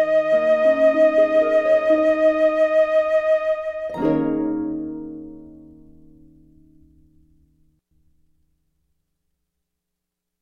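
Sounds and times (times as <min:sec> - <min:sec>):
flute note G: 0:00.0 - 0:04.6.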